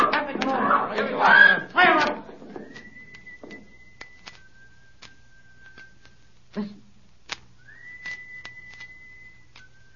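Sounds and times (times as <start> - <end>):
people shouting: 0.0 - 2.3
high-pitched whistled signal: 2.5 - 6.3, 7.6 - 9.9.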